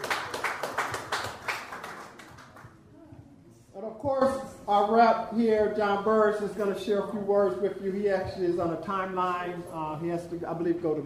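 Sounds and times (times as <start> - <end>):
audience clapping: 0.0 - 2.8
speech: 4.0 - 11.0.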